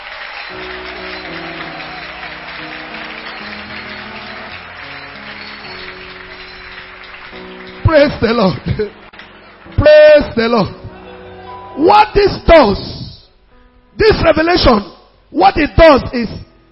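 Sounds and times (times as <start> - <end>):
audience clapping hands: 0.0 - 11.6
speech: 7.9 - 9.0, 9.8 - 10.8, 11.8 - 12.9, 14.0 - 16.4.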